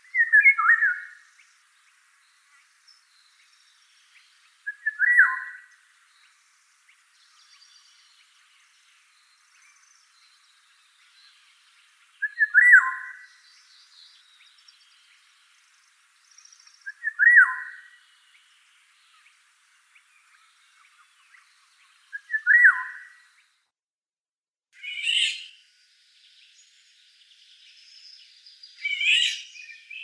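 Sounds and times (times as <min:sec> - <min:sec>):
Eurasian golden oriole calling: 0:00.0 - 0:23.5, 0:24.8 - 0:30.0.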